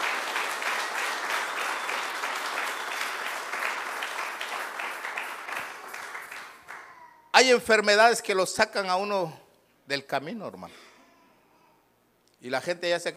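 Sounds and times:
audience clapping: 0.0 - 7.0
speech: 7.4 - 10.8, 12.4 - 13.1.

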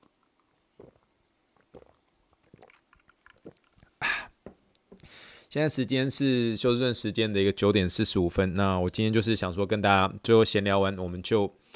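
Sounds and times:
drinking sparkling water: 0.0 - 4.3
speech: 5.5 - 11.7.

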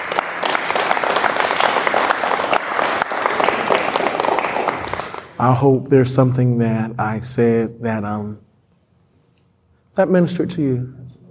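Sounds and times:
audience clapping hands: 0.0 - 5.6
speech: 5.4 - 8.5, 10.0 - 11.2.

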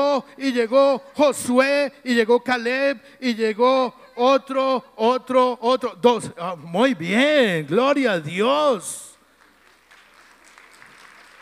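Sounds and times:
speech: 0.0 - 9.0
scattered applause: 9.3 - 11.4.

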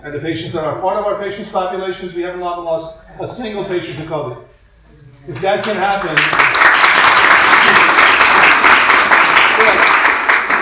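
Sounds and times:
speech: 0.0 - 4.6, 5.2 - 7.9
audience applause: 5.6 - 10.5.

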